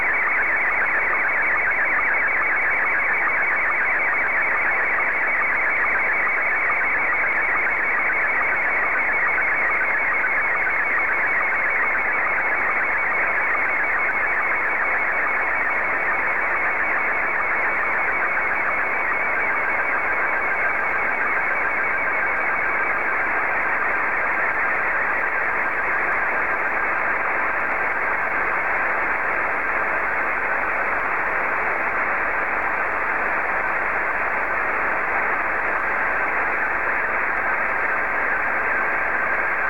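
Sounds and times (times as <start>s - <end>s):
slow-scan television signal: 0.0s - 39.6s.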